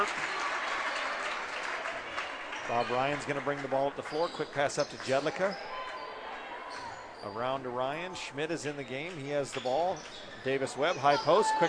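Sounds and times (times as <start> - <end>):
crowd clapping at a basketball game: 0.0 - 6.0
speech: 2.7 - 5.8, 7.2 - 11.6.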